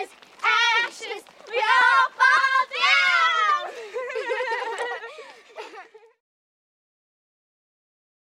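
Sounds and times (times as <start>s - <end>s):
American children singing a nursery rhyme: 0.0s - 3.7s
laughter: 3.5s - 6.2s.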